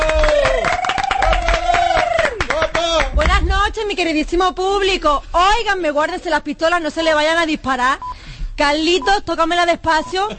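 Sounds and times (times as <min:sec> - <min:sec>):
audience applause: 0:00.0 - 0:03.2
speech: 0:04.0 - 0:10.3.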